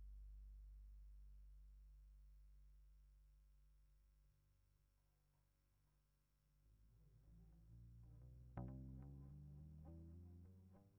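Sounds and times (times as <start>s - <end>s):
bass guitar recorded by direct input: 0.0s - 2.2s, 6.8s - 10.9s.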